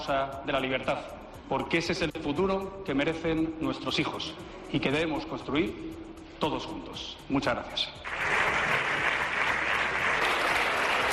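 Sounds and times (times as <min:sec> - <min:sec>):
speech: 0:00.0 - 0:08.4
parliamentary applause from party benches: 0:08.0 - 0:11.1.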